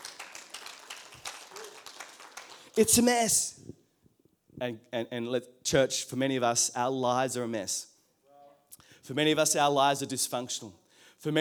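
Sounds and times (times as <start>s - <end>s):
audience clapping: 0.0s - 3.5s
speech: 2.8s - 3.6s, 4.6s - 7.9s, 9.1s - 11.3s.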